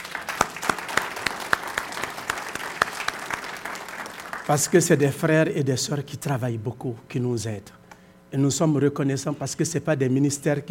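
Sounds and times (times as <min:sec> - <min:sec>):
audience applause for hard-working volunteers: 0:00.0 - 0:04.8
speech: 0:04.5 - 0:10.6.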